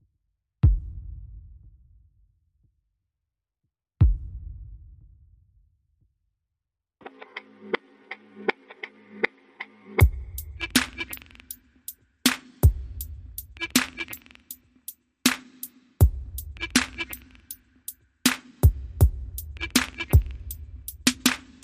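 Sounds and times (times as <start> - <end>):
drums: 0.6 - 1.7, 4.0 - 5.1, 10.0 - 21.6.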